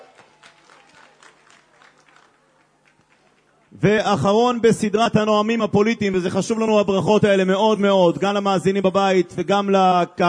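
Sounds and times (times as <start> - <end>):
audience applause: 0.0 - 3.7
speech: 3.7 - 10.2.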